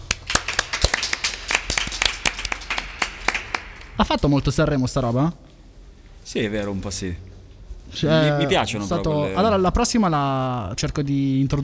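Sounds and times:
applause: 0:00.0 - 0:04.2
speech: 0:04.0 - 0:05.5, 0:06.3 - 0:07.3, 0:07.9 - 0:11.6.

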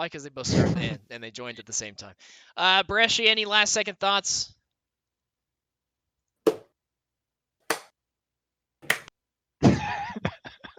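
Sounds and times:
speech: 0:00.0 - 0:04.6
slow clap: 0:07.7 - 0:07.9, 0:08.8 - 0:09.1.

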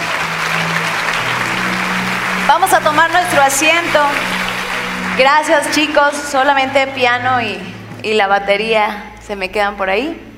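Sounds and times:
audience applause: 0:00.0 - 0:07.0
speech: 0:02.5 - 0:04.4, 0:05.2 - 0:10.3.

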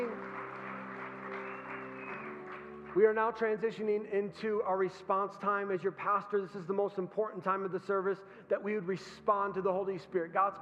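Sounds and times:
audience hand clapping: 0:00.0 - 0:03.5
speech: 0:02.9 - 0:10.5.

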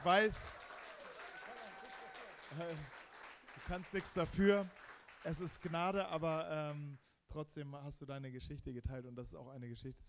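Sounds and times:
speech: 0:00.0 - 0:00.6, 0:02.5 - 0:03.0, 0:03.6 - 0:10.0
crowd applauding: 0:00.0 - 0:06.8.

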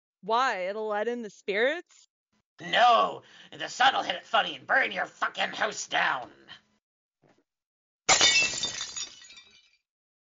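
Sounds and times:
speech: 0:00.2 - 0:06.6
glass object smashing: 0:08.1 - 0:09.8.

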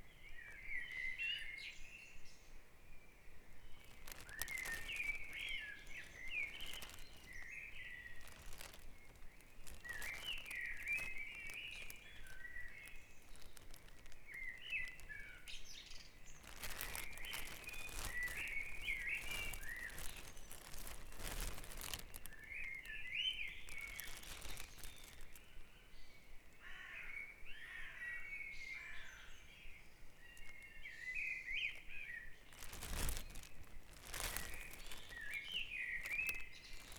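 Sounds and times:
birds singing in a dawn chorus: 0:00.0 - 0:26.3, 0:27.0 - 0:36.9
crackling noise: 0:03.7 - 0:15.6, 0:16.2 - 0:25.5, 0:30.4 - 0:30.7, 0:31.7 - 0:36.9.

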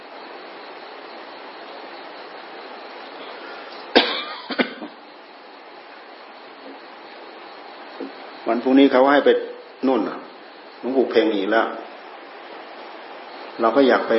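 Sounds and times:
steady hiss: 0:00.0 - 0:14.1
person coughing after a deep breath: 0:03.9 - 0:04.9
speech: 0:08.5 - 0:10.2, 0:10.8 - 0:11.9, 0:13.6 - 0:14.1.

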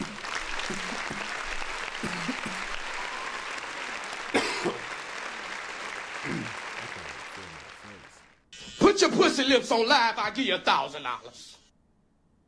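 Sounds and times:
applause: 0:00.0 - 0:08.4
speech: 0:09.0 - 0:11.6.

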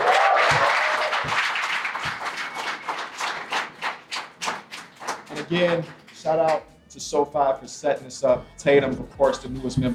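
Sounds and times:
audience applause: 0:00.0 - 0:06.2
speech: 0:05.5 - 0:09.9.

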